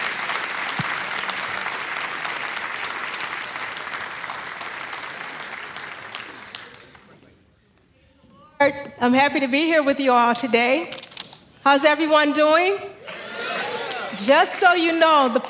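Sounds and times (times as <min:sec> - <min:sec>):
church congregation applauding to welcome a visiting pastor: 0:00.0 - 0:07.4, 0:13.0 - 0:15.4
speech: 0:08.6 - 0:11.0, 0:11.6 - 0:13.0, 0:14.2 - 0:15.4.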